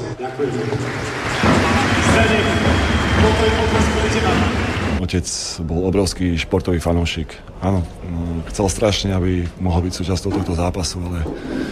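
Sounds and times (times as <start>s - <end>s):
arena crowd applause: 0.0s - 5.0s
speech: 0.2s - 11.7s.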